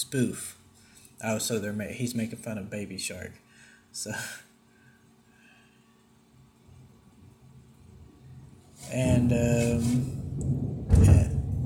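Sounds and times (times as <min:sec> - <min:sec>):
speech: 0:00.0 - 0:00.6, 0:01.2 - 0:04.5, 0:08.9 - 0:10.6
thunder: 0:09.0 - 0:11.6.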